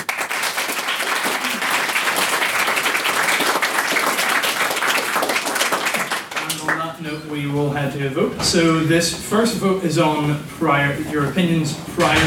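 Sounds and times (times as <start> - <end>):
audience applause: 0.0 - 6.9
speech: 7.3 - 12.2.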